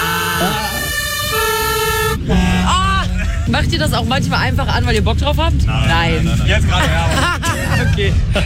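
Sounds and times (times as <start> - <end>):
fire engine siren or horn: 0.0 - 3.5
laughter: 2.6 - 3.9, 6.1 - 8.4
speech: 3.6 - 8.4.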